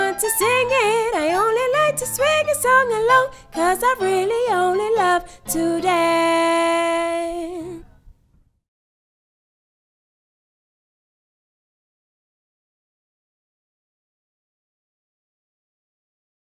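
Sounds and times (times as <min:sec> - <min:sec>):
backing track: 0:00.0 - 0:07.7.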